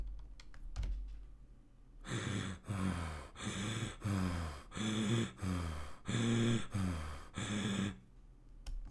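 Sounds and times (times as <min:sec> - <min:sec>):
heavy breathing: 0:02.0 - 0:08.0.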